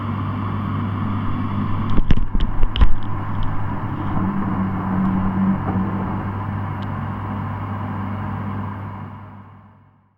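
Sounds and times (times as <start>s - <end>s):
washing machine recorded with a contact mic: 0.0s - 8.4s.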